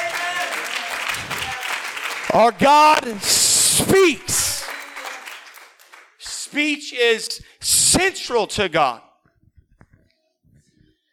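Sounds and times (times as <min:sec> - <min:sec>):
audience clapping hands: 0:00.0 - 0:06.9
speech: 0:02.3 - 0:04.4, 0:06.5 - 0:09.1.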